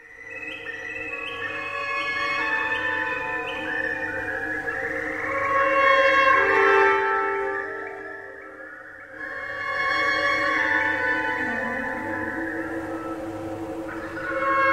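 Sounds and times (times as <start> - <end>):
recorded birdsong: 0.0 - 14.7
orchestral music: 5.6 - 14.7.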